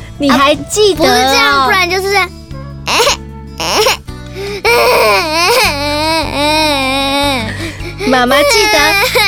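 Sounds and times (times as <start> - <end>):
soft steady music: 0.0 - 9.2
speech: 0.2 - 3.2, 8.2 - 9.2
baby crying: 2.9 - 9.2.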